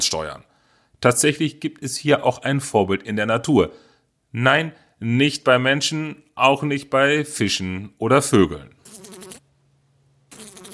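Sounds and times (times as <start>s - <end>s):
speech: 0.0s - 9.1s
fly buzzing: 8.9s - 9.4s, 10.3s - 10.7s.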